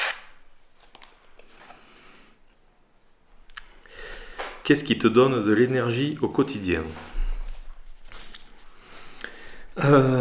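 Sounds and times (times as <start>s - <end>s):
speech: 4.7s - 7.1s, 9.8s - 10.1s
icebreaker question card drawn from a deck: 7.5s - 9.2s.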